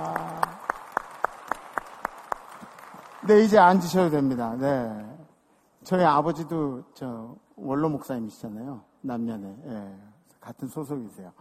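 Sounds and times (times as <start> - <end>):
church congregation clapping in unison: 0.0 - 3.4
speech: 3.2 - 5.1, 5.8 - 11.3.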